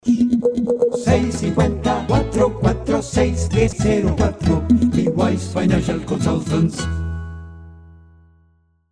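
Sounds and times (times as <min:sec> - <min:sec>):
person singing: 0:00.0 - 0:07.0.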